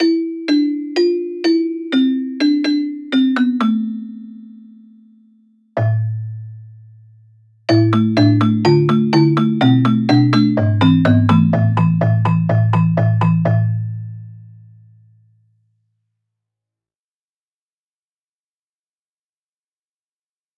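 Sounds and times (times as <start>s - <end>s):
celesta: 0.0s - 7.0s, 7.7s - 14.7s.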